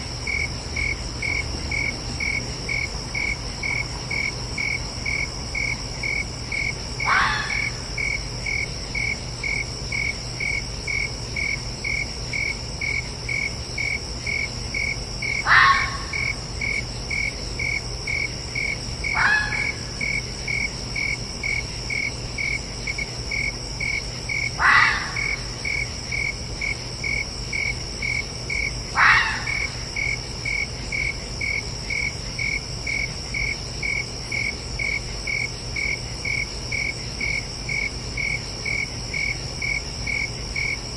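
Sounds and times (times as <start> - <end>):
crickets chirping: 0.0 - 40.9
red fox giving raspy barks: 7.0 - 7.8, 15.4 - 16.4, 19.1 - 20.0, 24.6 - 25.5, 28.9 - 29.9.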